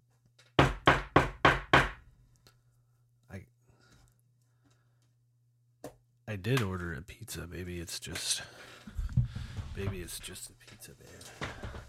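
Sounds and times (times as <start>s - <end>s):
firm knocks on a door: 0.6s - 2.0s
speech: 6.3s - 9.0s, 9.8s - 11.6s.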